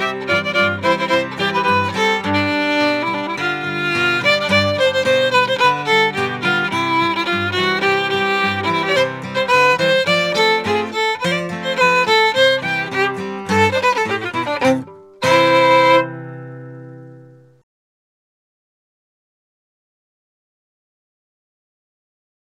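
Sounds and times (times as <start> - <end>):
polka music: 0.0 - 16.3.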